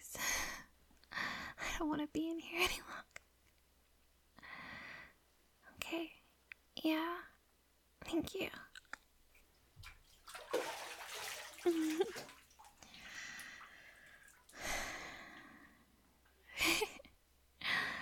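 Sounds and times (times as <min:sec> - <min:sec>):
soft breaths and a sigh: 0:00.0 - 0:01.8, 0:04.4 - 0:05.8, 0:12.8 - 0:18.0
speech: 0:01.8 - 0:03.2, 0:05.9 - 0:06.2, 0:06.8 - 0:07.3, 0:08.1 - 0:08.7
water sloshing in a bathtub as someone climbs out: 0:09.7 - 0:14.6.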